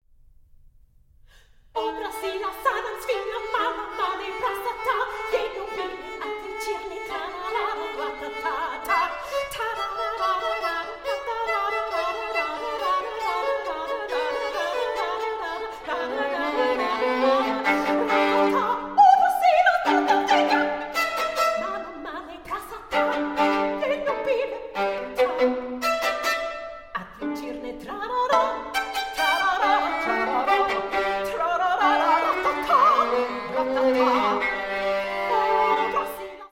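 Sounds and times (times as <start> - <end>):
two violins playing a scherzo: 1.8 - 36.5.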